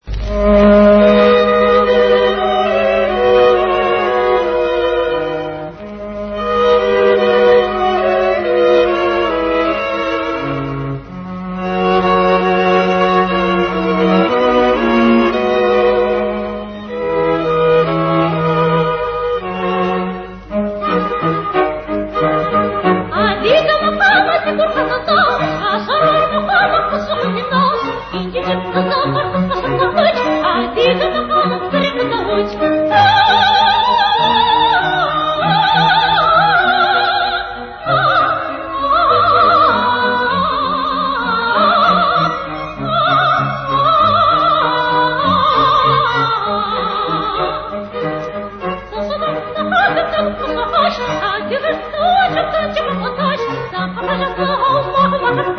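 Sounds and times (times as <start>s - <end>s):
Circassian melody: 0.0s - 55.5s.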